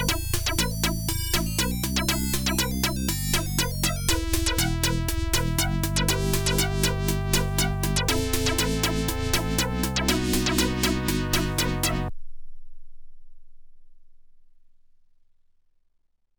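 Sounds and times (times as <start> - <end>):
OPL2 FM synth chip music: 0.0 - 12.1.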